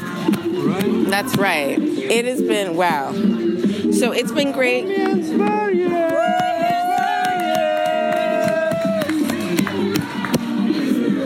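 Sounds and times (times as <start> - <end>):
crowd cheering and shouting: 0.0 - 1.8, 4.1 - 11.2
speech: 1.1 - 6.3
high whoop: 6.0 - 9.2
scattered clapping: 6.0 - 10.6.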